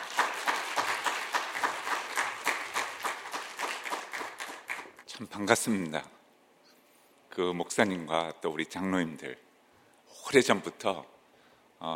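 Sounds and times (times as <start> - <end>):
audience applause welcoming guests: 0.0 - 5.0
speech: 5.2 - 6.2, 7.4 - 9.5, 10.1 - 11.2.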